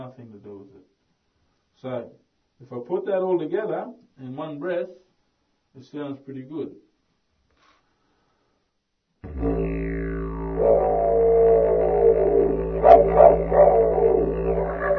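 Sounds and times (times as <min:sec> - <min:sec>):
didgeridoo lesson: 0:09.2 - 0:14.9.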